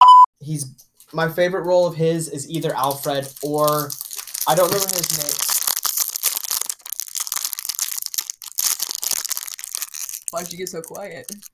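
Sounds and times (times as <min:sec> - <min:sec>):
speech: 0:00.4 - 0:05.4, 0:10.3 - 0:11.5
crinkling and crushing of snack packaging: 0:02.5 - 0:11.5.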